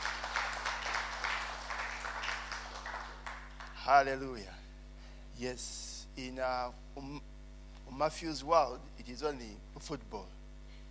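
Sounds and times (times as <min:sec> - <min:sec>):
crowd clapping: 0:00.0 - 0:04.2
faint electrical hum: 0:00.0 - 0:10.8
speech: 0:03.9 - 0:04.6, 0:05.4 - 0:07.3, 0:07.9 - 0:10.4.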